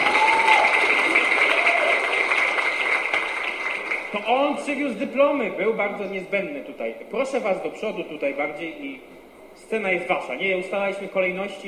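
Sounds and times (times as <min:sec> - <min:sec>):
audience applause: 0:00.0 - 0:04.3
speech: 0:04.3 - 0:11.6.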